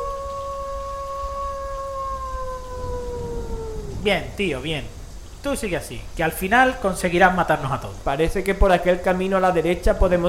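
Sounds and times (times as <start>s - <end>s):
wolf howling: 0.0s - 4.4s, 9.9s - 10.2s
speech: 4.0s - 10.2s.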